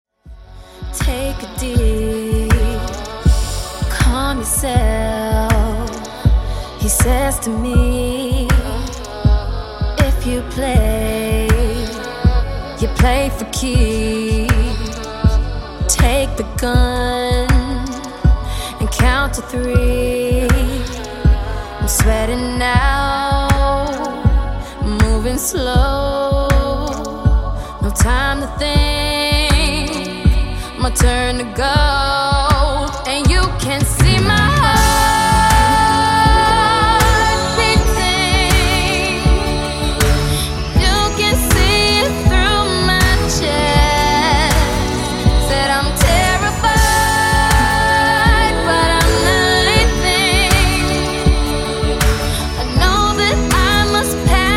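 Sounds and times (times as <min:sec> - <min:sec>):
funk intro and outro music: 0:00.4 - 0:54.5.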